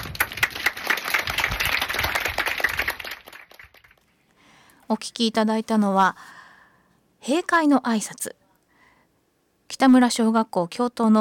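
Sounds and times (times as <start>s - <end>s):
audience applause: 0.0s - 4.0s
speech: 4.9s - 6.4s, 7.2s - 8.4s, 9.7s - 11.2s.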